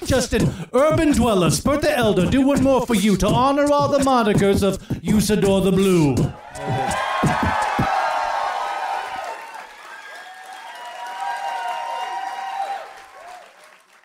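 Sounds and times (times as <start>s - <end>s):
speech: 0.0s - 7.6s
audience applause: 6.4s - 14.0s.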